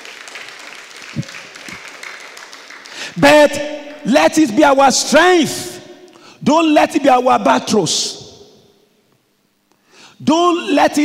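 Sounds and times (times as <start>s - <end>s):
audience applause: 0.0s - 3.2s
speech: 3.2s - 5.7s, 6.4s - 8.2s, 10.2s - 11.0s.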